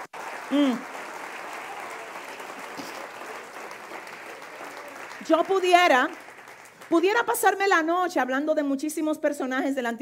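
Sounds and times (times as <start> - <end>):
audience applause: 0.0 - 7.3
speech: 0.5 - 0.9, 5.3 - 6.2, 6.9 - 10.0.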